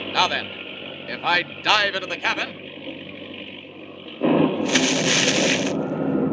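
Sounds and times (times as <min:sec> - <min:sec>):
speech: 0:00.2 - 0:02.6
lightning bolt striking a plane: 0:04.2 - 0:06.2.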